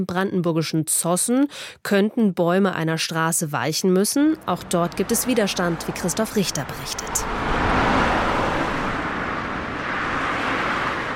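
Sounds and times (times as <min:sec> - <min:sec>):
speech: 0:00.0 - 0:07.8
heavy trucks rumbling along a tree-lined town street: 0:04.4 - 0:11.1.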